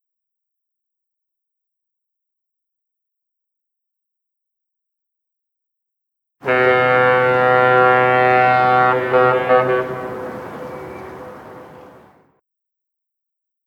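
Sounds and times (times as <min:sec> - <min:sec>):
New York City foghorn: 0:06.4 - 0:12.2.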